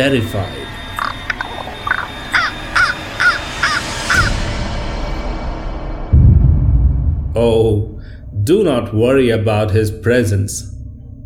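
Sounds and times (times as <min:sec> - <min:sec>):
speech: 0:00.0 - 0:00.8, 0:07.4 - 0:10.7
raven cawing: 0:00.7 - 0:04.6
low rumbling background: 0:04.2 - 0:11.2.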